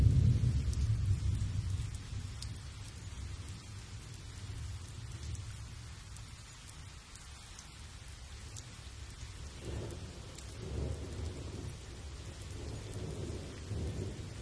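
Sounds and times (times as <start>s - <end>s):
thunderstorm in a field: 0.0s - 2.7s, 9.5s - 14.3s.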